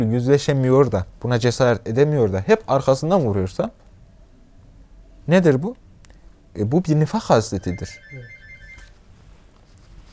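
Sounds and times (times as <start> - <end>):
speech: 0.0 - 3.8, 5.3 - 5.8, 6.6 - 8.4
low hum: 0.0 - 10.1
mobile phone ringing: 7.6 - 9.0.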